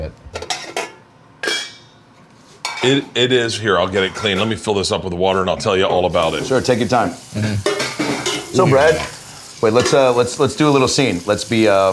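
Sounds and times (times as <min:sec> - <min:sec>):
cooking pot clanking while handled: 0:00.4 - 0:02.0, 0:07.6 - 0:10.2
speech: 0:02.8 - 0:07.7, 0:08.6 - 0:11.9.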